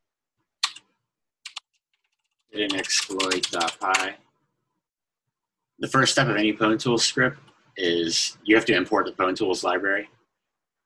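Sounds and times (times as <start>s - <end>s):
computer keyboard typing while writing a PwnTools script: 0.6s - 0.8s, 1.4s - 4.1s
speech: 2.5s - 4.3s, 5.8s - 10.2s.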